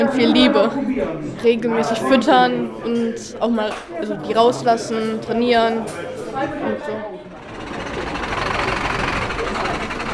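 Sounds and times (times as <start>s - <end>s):
speech: 0.0s - 7.2s
truck engine arriving: 7.1s - 10.1s.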